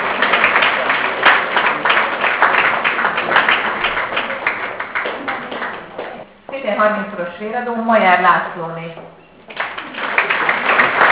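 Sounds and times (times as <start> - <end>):
audience applause: 0.0 - 6.2, 9.5 - 11.1
speech: 6.8 - 9.2.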